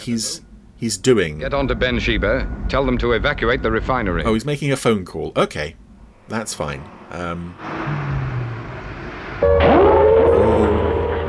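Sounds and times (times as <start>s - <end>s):
speech: 0.0s - 8.0s
sci-fi base action stations alarm siren in Cloud Base: 7.6s - 11.2s.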